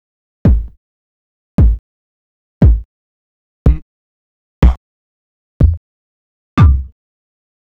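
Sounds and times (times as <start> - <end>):
vinyl bass drum: 0.5 - 0.8, 1.6 - 1.8, 2.6 - 2.9, 5.6 - 5.8, 6.6 - 6.9.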